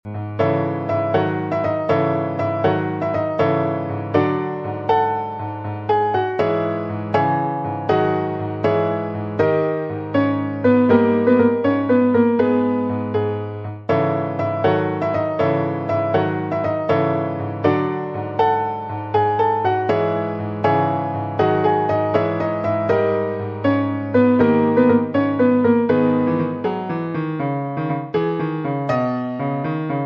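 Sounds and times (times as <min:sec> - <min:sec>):
piano: 0:00.0 - 0:30.0.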